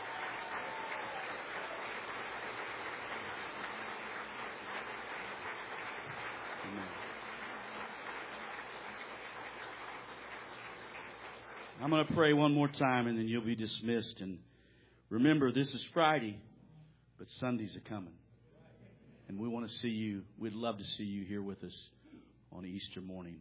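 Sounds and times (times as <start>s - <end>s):
audience applause: 0.0s - 12.2s
speech: 11.8s - 14.5s, 15.1s - 16.5s, 17.2s - 18.2s, 19.3s - 23.3s.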